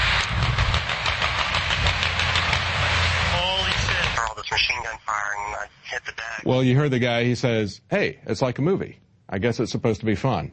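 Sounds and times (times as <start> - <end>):
military helicopters flying overhead: 0.0 - 4.9
speech: 6.0 - 10.5.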